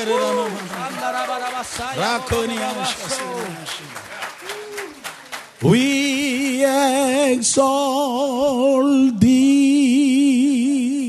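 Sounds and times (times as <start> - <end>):
man speaking or chanting loudly: 0.0 - 4.0
speech: 0.0 - 4.2, 5.6 - 10.6
audience applauding: 0.0 - 7.0.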